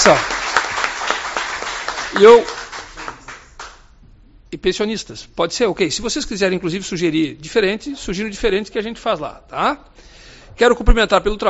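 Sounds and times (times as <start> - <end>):
speech: 0.0 - 0.4, 2.2 - 2.6, 4.5 - 11.4
audience applause: 0.0 - 3.8.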